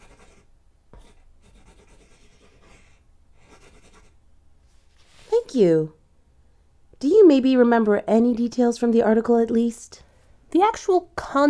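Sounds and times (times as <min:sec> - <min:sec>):
someone writing down an address: 0:00.0 - 0:04.2
speech: 0:05.5 - 0:06.0, 0:07.0 - 0:11.4.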